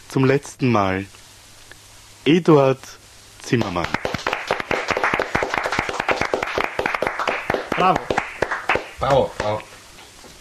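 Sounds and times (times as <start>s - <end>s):
speech: 0.1s - 1.2s, 2.2s - 4.1s, 7.8s - 8.2s, 9.0s - 9.7s
studio audience clapping at a farewell TV show: 3.5s - 9.6s.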